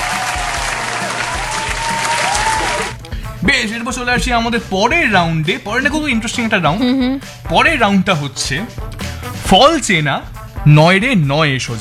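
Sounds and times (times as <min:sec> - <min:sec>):
quiz show audience applause: 0:00.0 - 0:03.0
speech: 0:03.4 - 0:11.8.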